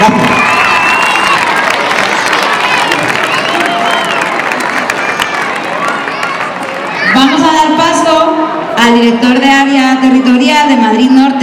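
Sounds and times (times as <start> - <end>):
loud applause from audience: 0.0 - 8.0
speech: 0.1 - 0.5, 8.9 - 11.4.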